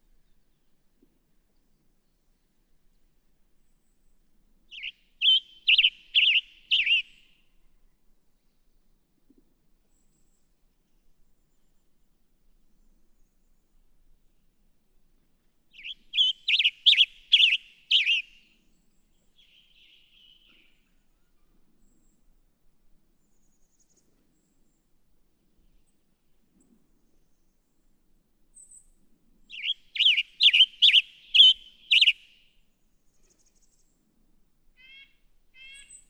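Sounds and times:
Western Tanager: 0:04.7 - 0:07.3, 0:15.8 - 0:18.4, 0:29.5 - 0:32.4, 0:34.8 - 0:36.0.

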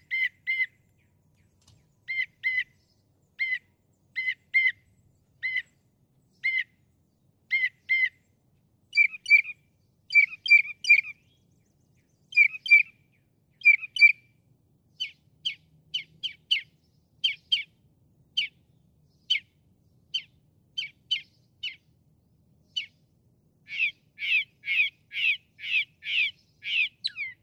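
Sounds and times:
Northern mockingbird singing: 0:00.0 - 0:06.8, 0:07.5 - 0:08.3, 0:08.9 - 0:14.2, 0:15.0 - 0:17.7, 0:20.1 - 0:21.9, 0:22.6 - 0:23.0, 0:23.6 - 0:27.4
low hum: 0:00.0 - 0:27.4.

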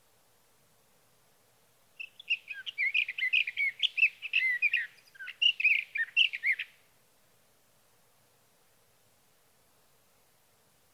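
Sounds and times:
sage thrasher warbling song: 0:02.0 - 0:06.7.

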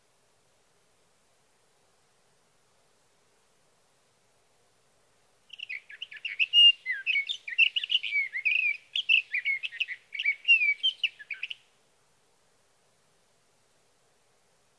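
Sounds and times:
sage thrasher song: 0:05.5 - 0:11.6.

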